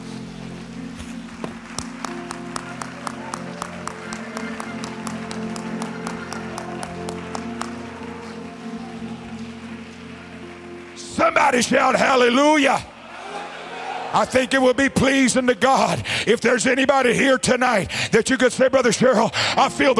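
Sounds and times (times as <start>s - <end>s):
audience clapping hands: 0.8s - 12.9s
speech: 11.5s - 12.9s, 14.1s - 19.9s.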